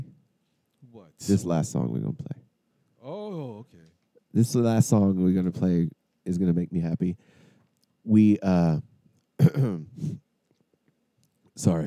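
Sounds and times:
speech: 0:01.0 - 0:02.4, 0:03.0 - 0:07.4, 0:08.0 - 0:10.2, 0:11.6 - 0:11.8
throat clearing: 0:09.4 - 0:10.2.

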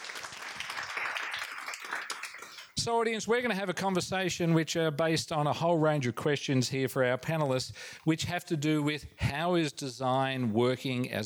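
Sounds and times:
audience applause: 0:00.0 - 0:02.8
speech: 0:02.8 - 0:11.2.

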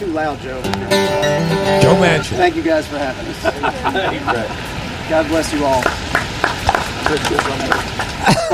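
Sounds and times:
speech: 0:00.3 - 0:06.0, 0:07.1 - 0:08.5
laughter: 0:02.0 - 0:04.8, 0:07.1 - 0:08.5
applause: 0:05.5 - 0:08.5.

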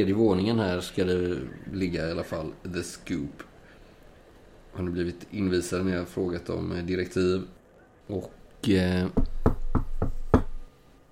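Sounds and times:
speech: 0:00.0 - 0:03.5, 0:04.8 - 0:09.3
knocking on an office door: 0:09.1 - 0:10.6.

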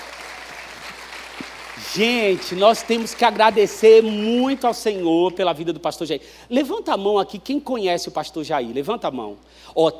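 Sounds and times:
audience applauding: 0:00.0 - 0:05.1
speech: 0:02.0 - 0:09.9.

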